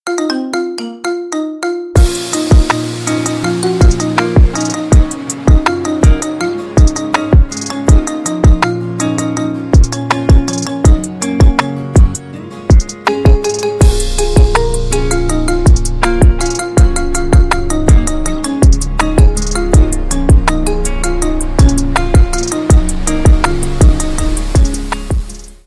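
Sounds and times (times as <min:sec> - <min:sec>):
marimba remix: 0:00.0 - 0:25.6.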